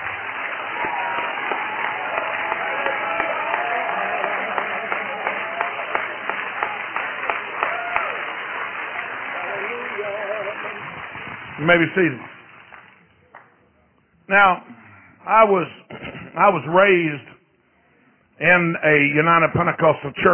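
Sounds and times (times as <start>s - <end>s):
audience shouting: 0.0s - 11.0s
audience clapping: 0.0s - 13.6s
speech: 11.7s - 12.3s, 14.4s - 14.7s, 15.3s - 15.8s, 16.4s - 17.3s, 18.4s - 20.3s.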